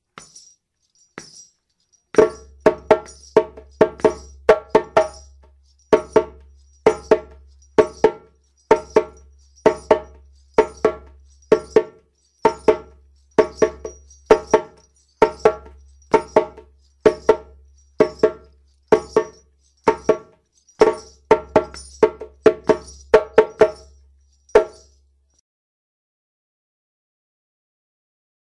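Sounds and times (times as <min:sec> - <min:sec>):
djembe playing kuku rhythm: 0:02.2 - 0:24.0, 0:24.6 - 0:24.9.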